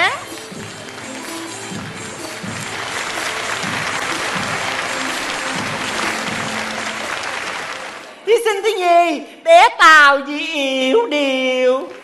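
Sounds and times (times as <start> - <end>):
audience applause: 0.2 - 8.2
speech: 8.4 - 12.0.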